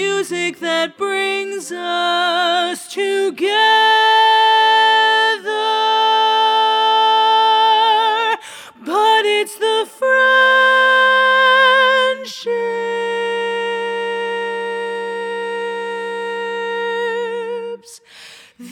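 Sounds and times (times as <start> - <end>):
learning track singing with dominant lead part: 0.0 - 18.0.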